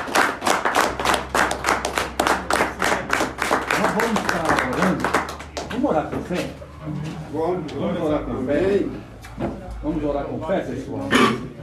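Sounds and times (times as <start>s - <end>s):
audience clapping: 0.0s - 6.2s
speech: 4.0s - 4.5s, 5.8s - 11.5s.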